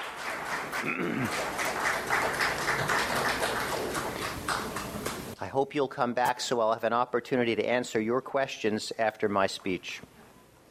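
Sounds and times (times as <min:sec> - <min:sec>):
crowd applause: 0:00.0 - 0:05.4
speech: 0:00.8 - 0:01.6, 0:05.4 - 0:10.1.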